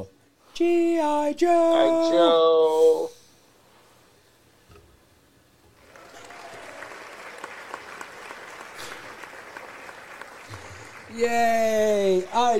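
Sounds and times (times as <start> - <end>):
speech: 0.0 - 3.2, 11.2 - 12.5
award ceremony applause sound effect: 5.8 - 12.5.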